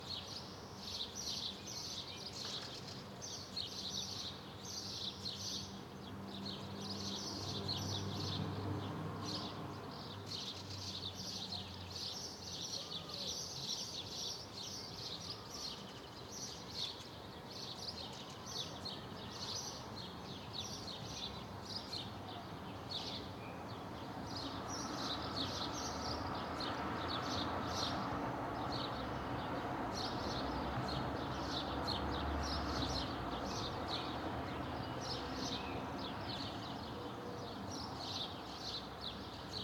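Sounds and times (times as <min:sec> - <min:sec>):
birds in a residential area in the afternoon: 0:00.0 - 0:39.6
distant traffic in a residential area: 0:24.2 - 0:37.9.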